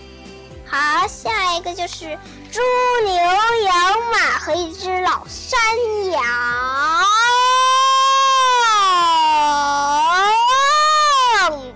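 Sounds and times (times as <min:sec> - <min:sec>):
speech: 0:00.7 - 0:07.4
voice imitating alarm siren wail: 0:06.6 - 0:11.5.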